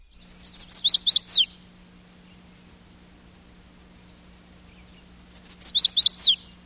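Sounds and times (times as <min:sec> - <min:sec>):
chestnut-sided warbler singing its mate attraction song: 0:00.0 - 0:02.8, 0:03.8 - 0:06.6
faint steady hum: 0:00.0 - 0:06.6.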